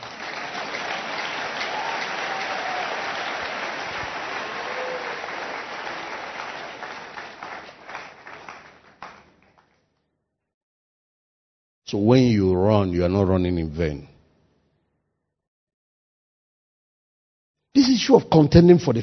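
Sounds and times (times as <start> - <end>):
audience applause: 0.0 - 9.8
speech: 11.9 - 14.1, 18.1 - 19.0.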